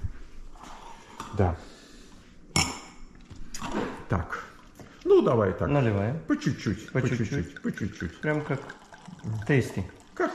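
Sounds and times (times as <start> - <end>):
speech: 1.4 - 1.8, 4.1 - 10.3
stemmed wine glasses clinking: 6.4 - 10.3.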